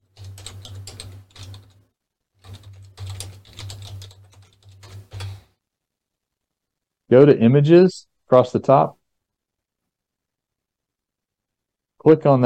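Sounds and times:
typing a web search on a computer keyboard: 0.0 - 1.8, 2.4 - 5.5
speech: 7.1 - 9.0, 12.0 - 12.4.

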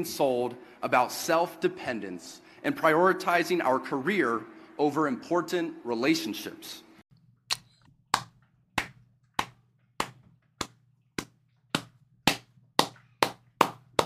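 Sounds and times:
speech: 0.0 - 6.8
slow clap: 7.5 - 14.0.

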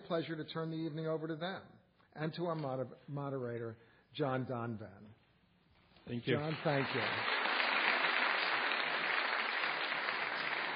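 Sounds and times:
speech: 0.1 - 5.2, 6.1 - 7.3
audience applause: 6.3 - 10.7.

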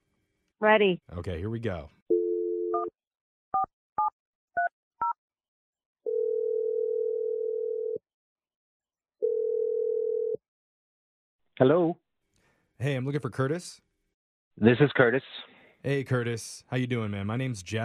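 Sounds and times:
speech: 0.6 - 2.1, 11.6 - 12.0, 12.8 - 13.9, 14.6 - 17.8
telephone dial tone: 2.1 - 2.9, 6.0 - 8.0, 9.2 - 10.4
telephone ringing tones: 6.1 - 8.0, 9.2 - 10.4.

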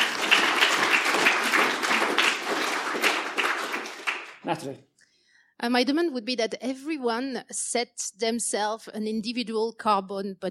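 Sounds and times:
crowd clapping: 0.0 - 4.8
speech: 4.5 - 4.9, 5.6 - 10.4.

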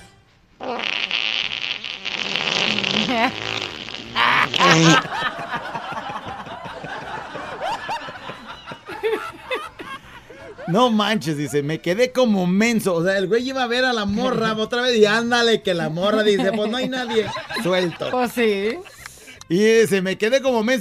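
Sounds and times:
loud raspy fart: 0.6 - 5.4
people snickering and laughing: 4.2 - 11.6, 15.9 - 19.2
speech: 10.7 - 18.9, 19.5 - 20.8.

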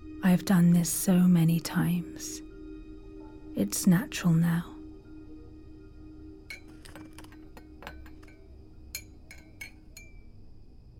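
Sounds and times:
low steady hum: 0.0 - 10.9
speech: 0.2 - 2.4, 3.6 - 4.7
ceramic teacup clinking while making tea: 6.5 - 10.3.

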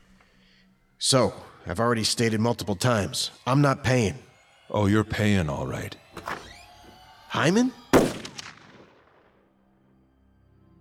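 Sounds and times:
speech: 1.0 - 6.4, 7.3 - 8.1
gunshot in a dramatized scene: 7.9 - 9.3.

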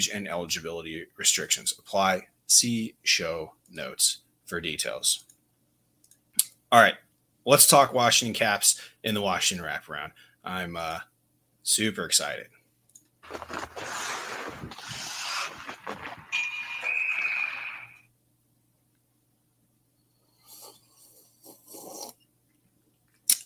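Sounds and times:
speech: 0.0 - 5.3, 6.7 - 12.6, 13.3 - 14.9
person sipping bourbon: 13.3 - 18.0.

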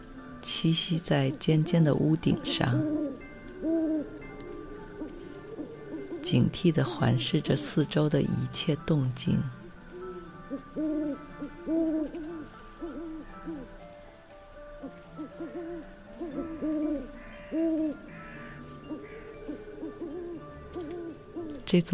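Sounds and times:
speech: 0.5 - 4.2, 6.3 - 9.6, 10.8 - 12.2, 21.7 - 21.9
owl hooting: 1.6 - 8.2, 9.5 - 13.7, 15.2 - 21.9.

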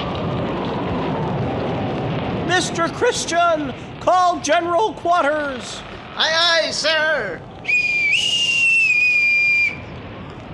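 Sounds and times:
violent storm: 0.0 - 10.5
speech: 2.6 - 8.3.

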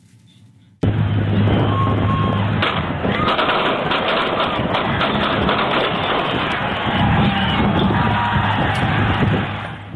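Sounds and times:
crowd screaming and shouting: 0.8 - 9.9
gunshots after a parade: 2.6 - 7.7.

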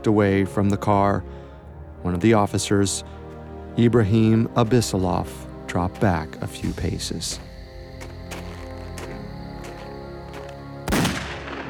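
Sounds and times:
speech: 0.0 - 1.4, 2.0 - 3.2, 3.8 - 7.5
gunshot: 10.9 - 11.6.

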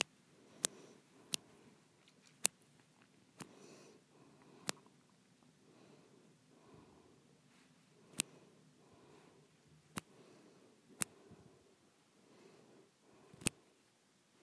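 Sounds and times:
brief bright snaps: 0.0 - 3.7, 4.4 - 4.9, 8.1 - 8.4, 9.9 - 10.2, 11.0 - 11.2
quiet low breathing: 0.0 - 14.4
faint rustling: 0.4 - 14.4.

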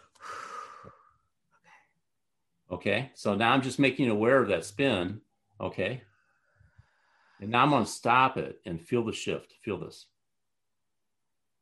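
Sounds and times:
big breath: 0.0 - 2.0, 6.0 - 7.5
speech: 2.8 - 6.1, 7.4 - 10.1.

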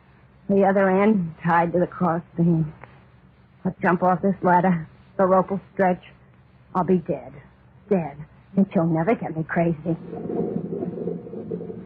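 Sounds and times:
speech: 0.5 - 2.8, 3.6 - 6.2, 6.8 - 11.6
rumble of thunder: 10.0 - 11.8.

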